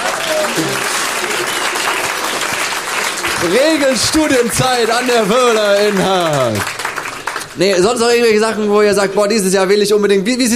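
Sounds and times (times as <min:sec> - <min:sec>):
crowd applauding: 0:00.0 - 0:09.9
speech: 0:03.4 - 0:06.7, 0:07.6 - 0:10.5.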